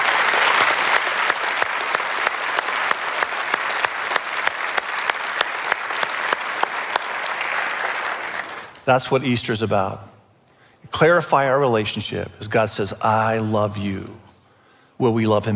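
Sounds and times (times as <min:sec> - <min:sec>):
audience applause: 0:00.0 - 0:08.8
speech: 0:08.9 - 0:10.1, 0:10.9 - 0:14.2, 0:15.0 - 0:15.5.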